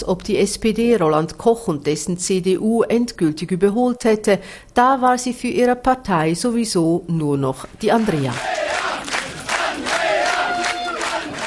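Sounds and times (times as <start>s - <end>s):
speech: 0.0s - 8.8s
crowd cheering at election party: 8.0s - 11.4s.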